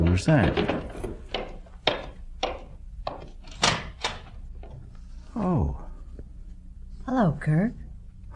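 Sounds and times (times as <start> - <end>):
knocks on a wooden door: 0.1 - 3.4
speech: 0.2 - 0.8, 7.2 - 7.8.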